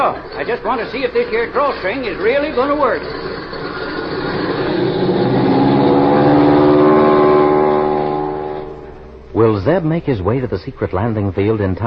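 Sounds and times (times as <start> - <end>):
speech: 0.0 - 3.6, 9.4 - 11.8
motor starting up into a droning engine hum: 3.0 - 9.4.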